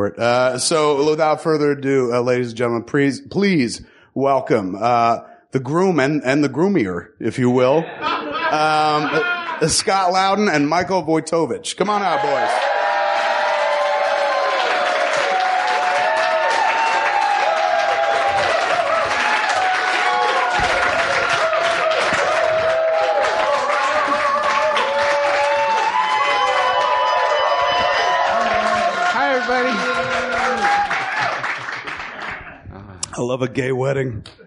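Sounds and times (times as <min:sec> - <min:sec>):
speech: 0:00.0 - 0:12.8, 0:33.3 - 0:34.4
laughter: 0:07.7 - 0:09.7
crowd whooping and cheering: 0:12.0 - 0:32.5
audience applause: 0:12.2 - 0:32.6.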